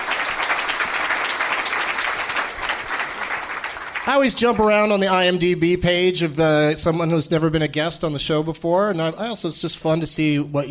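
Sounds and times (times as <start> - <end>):
audience applause for a guest: 0.0 - 4.4
speech: 4.0 - 10.6.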